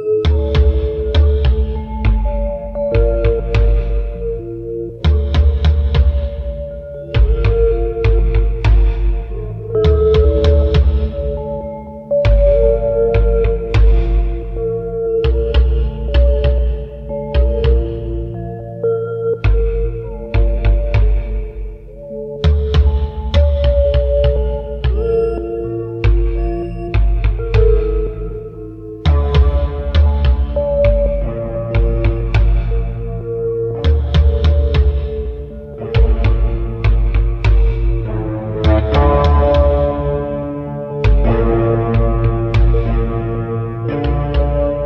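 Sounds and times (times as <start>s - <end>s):
mansion drums: 0.1s - 44.8s.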